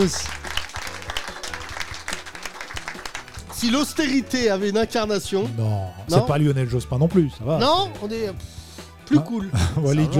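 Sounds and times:
speech: 0:00.0 - 0:00.4, 0:03.6 - 0:10.1
audience applause: 0:00.0 - 0:03.8
laughter: 0:09.4 - 0:10.1.

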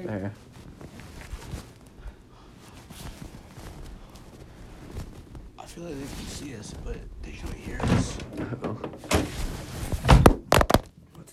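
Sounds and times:
speech: 0:00.0 - 0:00.9, 0:05.8 - 0:09.4
phone falling onto the floor: 0:10.0 - 0:10.9.

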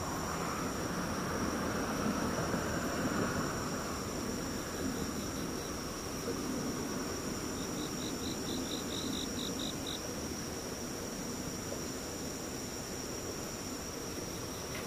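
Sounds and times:
insects singing in a chorus: 0:00.0 - 0:14.8.

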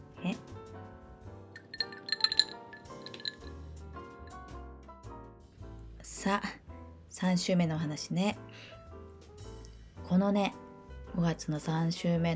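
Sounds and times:
sipping water from a glass: 0:01.6 - 0:03.6
speech: 0:06.2 - 0:06.6, 0:07.2 - 0:08.5, 0:10.1 - 0:10.6, 0:11.2 - 0:12.3.

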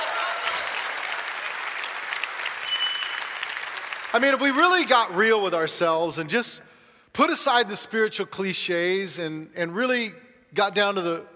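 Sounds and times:
audience clapping: 0:00.0 - 0:05.2
speech: 0:04.1 - 0:11.3.

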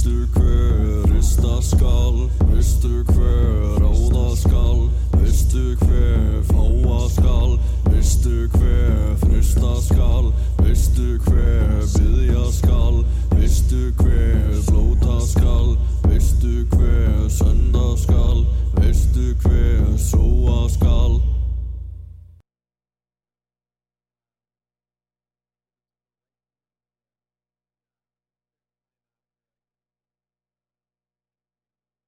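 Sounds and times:
Nordic folk music track with low drone and drums: 0:00.0 - 0:22.3
speech: 0:01.6 - 0:15.8.

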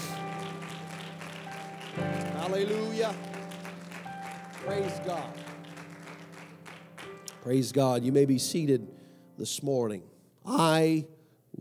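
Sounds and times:
audience clapping: 0:00.0 - 0:08.0
sustained organ-like tones: 0:00.0 - 0:08.0
speech: 0:02.0 - 0:03.3, 0:04.6 - 0:05.4, 0:07.4 - 0:11.5.

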